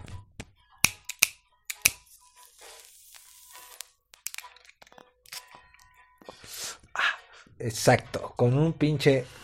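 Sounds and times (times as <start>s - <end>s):
kitchen lighter clicking: 0.8s - 2.1s
speech: 7.6s - 9.4s.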